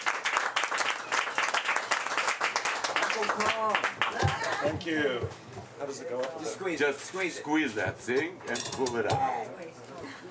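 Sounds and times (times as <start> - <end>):
audience applause welcoming an artist, actor and poet to a literary reading: 0.0 - 4.8
speech: 3.2 - 10.1.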